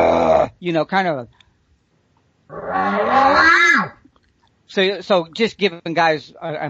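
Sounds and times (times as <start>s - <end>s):
person imitating a bull's raspy growl: 0.0s - 0.6s, 2.5s - 4.0s
speech: 0.6s - 1.4s, 4.7s - 6.6s.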